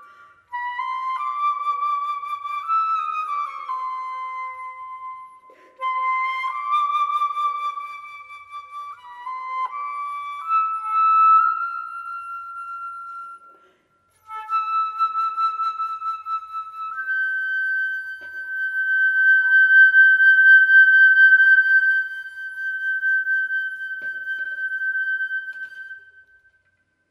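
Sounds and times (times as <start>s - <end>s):
flute melody: 0.0s - 26.9s.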